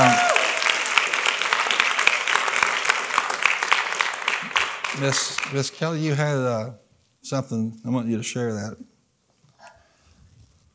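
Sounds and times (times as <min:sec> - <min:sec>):
audience clapping: 0:00.0 - 0:06.0
speech: 0:05.0 - 0:08.9.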